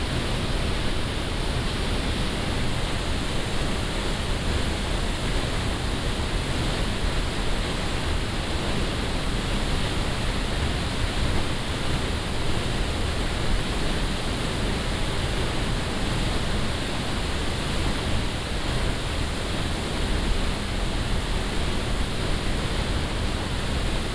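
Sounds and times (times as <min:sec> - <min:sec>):
Gluggafoss waterfall recorded close up: 0:00.0 - 0:24.1.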